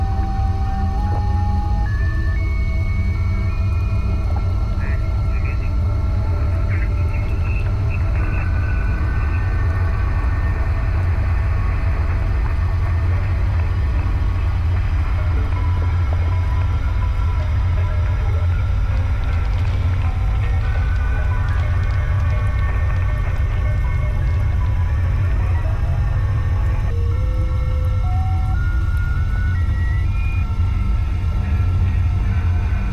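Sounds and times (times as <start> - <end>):
RV Lance arctic research vessel engine idling: 0.0 - 32.9.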